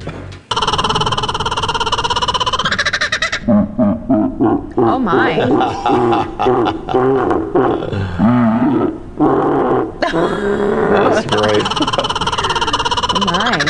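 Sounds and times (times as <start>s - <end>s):
laughing kookaburra call slowed down: 0.5s - 7.4s, 11.2s - 13.6s
laughter: 3.8s - 8.3s, 10.0s - 13.6s
speech: 4.4s - 12.0s, 13.2s - 13.6s.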